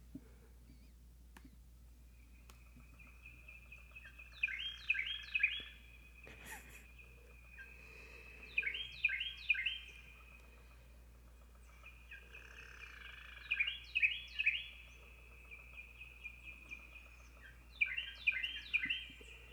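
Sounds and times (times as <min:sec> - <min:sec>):
Carolina Wren singing: 0:02.3 - 0:19.5.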